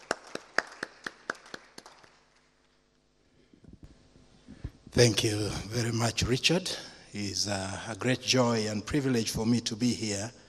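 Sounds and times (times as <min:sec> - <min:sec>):
audience clapping in welcome: 0:00.0 - 0:02.5
speech: 0:05.0 - 0:10.4.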